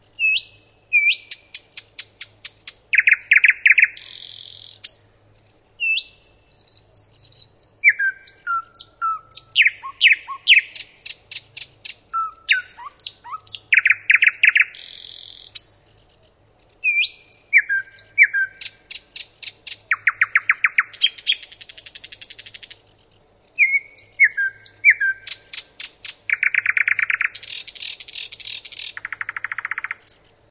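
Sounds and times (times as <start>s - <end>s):
common nightingale singing: 0.0s - 30.4s.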